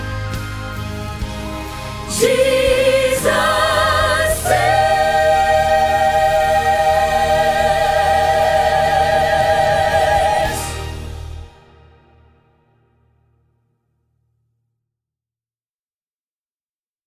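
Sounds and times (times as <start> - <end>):
soprano choir rehearsal part singing: 1.4 - 11.0.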